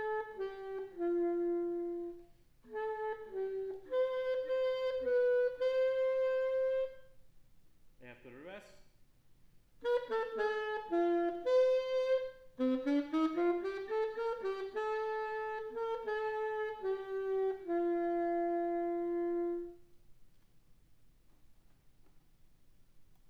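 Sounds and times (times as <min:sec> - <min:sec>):
madrigal alto saxophone solo: 0:00.0 - 0:07.3, 0:09.8 - 0:20.2.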